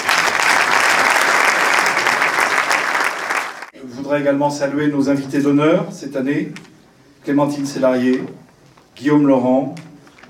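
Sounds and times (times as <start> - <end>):
audience applause: 0.0 - 3.7
speech: 4.1 - 8.4, 9.0 - 9.9.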